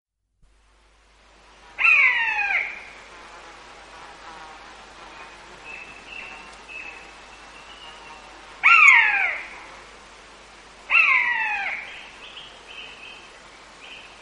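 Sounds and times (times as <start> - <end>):
common buzzard mewing: 1.8 - 3.0, 8.6 - 9.7, 10.9 - 12.0.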